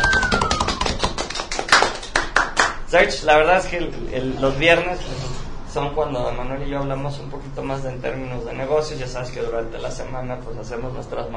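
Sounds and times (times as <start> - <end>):
small round of audience applause: 0.0 - 2.8
speech: 2.9 - 11.3.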